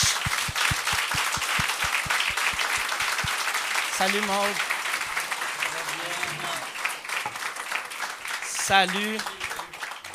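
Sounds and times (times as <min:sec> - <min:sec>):
low rhythmic thump: 0:00.0 - 0:03.4
audience applause: 0:00.0 - 0:10.1
speech: 0:04.0 - 0:04.7, 0:08.7 - 0:09.4.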